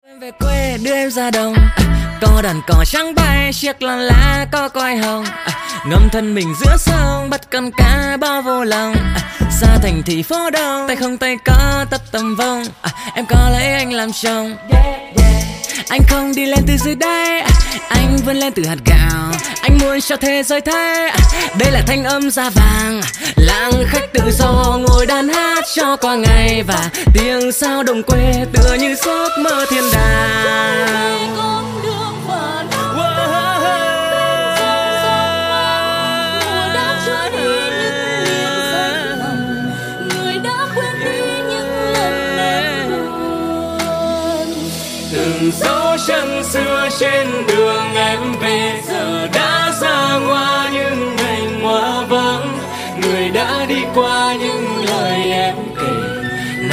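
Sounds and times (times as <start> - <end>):
Vietnamese rap music: 0.2 - 56.7.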